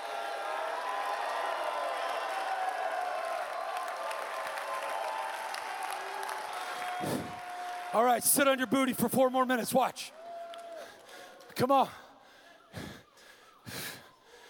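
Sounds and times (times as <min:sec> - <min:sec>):
audience clapping: 0:00.0 - 0:09.1, 0:10.1 - 0:11.7
speech: 0:07.0 - 0:10.2, 0:11.6 - 0:12.0.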